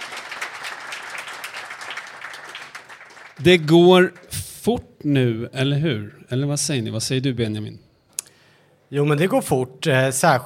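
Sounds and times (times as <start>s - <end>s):
crowd applause: 0.0s - 4.4s
speech: 3.4s - 7.8s, 8.9s - 10.4s.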